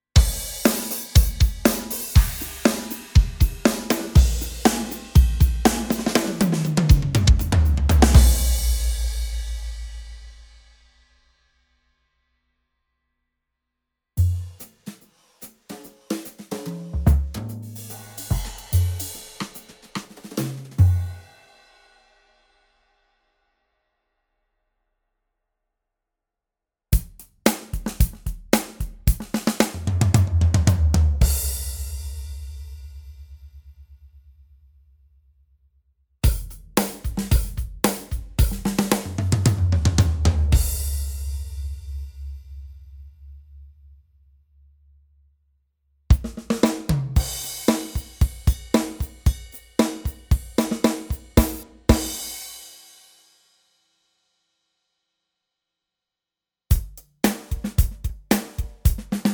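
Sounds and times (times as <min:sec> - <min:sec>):
drums: 0:00.0 - 0:11.2, 0:14.2 - 0:22.6, 0:26.9 - 0:34.2, 0:36.2 - 0:43.4, 0:46.1 - 0:53.6, 0:56.7 - 0:59.3.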